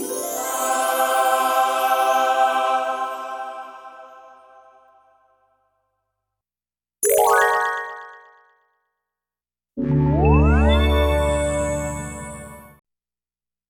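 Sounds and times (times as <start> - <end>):
upward glissandos: 0.1 - 5.1, 9.8 - 12.5.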